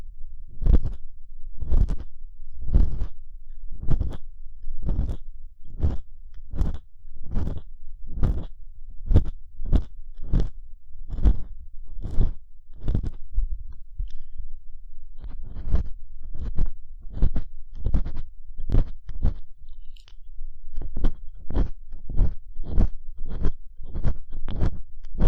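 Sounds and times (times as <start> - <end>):
realistic plastic ear pick scraping for ASMR: 0.6 - 1.0, 3.8 - 8.6, 9.1 - 10.6, 11.1 - 14.3, 15.2 - 25.2.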